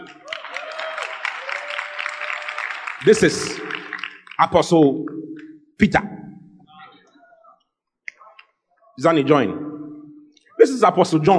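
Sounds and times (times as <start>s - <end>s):
audience clapping: 0.0s - 4.8s
speech: 3.0s - 3.8s, 4.4s - 6.2s, 9.0s - 9.7s, 10.6s - 11.3s.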